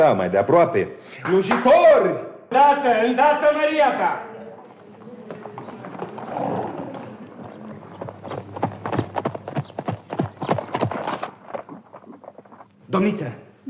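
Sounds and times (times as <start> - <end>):
speech: 0.0 - 4.3, 13.0 - 13.4
horse hooves clip-clopping: 4.6 - 12.8.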